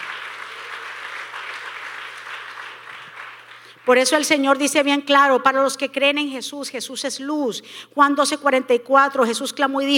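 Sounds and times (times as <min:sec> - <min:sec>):
audience applause: 0:00.0 - 0:03.8
speech: 0:03.9 - 0:09.9.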